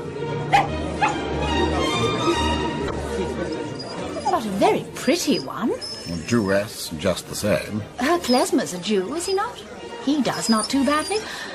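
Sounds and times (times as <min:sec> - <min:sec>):
low hum of murmur: 0:00.0 - 0:11.5
small dog whimpering: 0:03.7 - 0:04.6, 0:05.2 - 0:06.6, 0:10.4 - 0:11.3
speech: 0:04.6 - 0:11.5.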